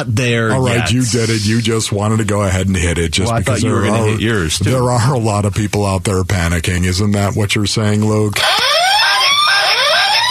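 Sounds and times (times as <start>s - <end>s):
speech: 0.0s - 8.8s
panic button alarm: 8.4s - 10.2s.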